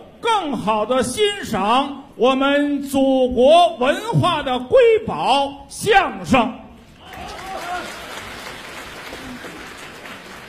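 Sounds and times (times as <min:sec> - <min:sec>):
speech: 0:00.2 - 0:06.6
audience applause: 0:07.0 - 0:10.4.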